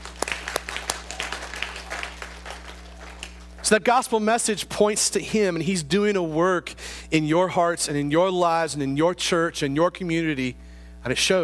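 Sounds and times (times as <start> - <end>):
audience applauding: 0.0 - 3.8
faint low hum: 0.0 - 11.4
speech: 3.7 - 11.4.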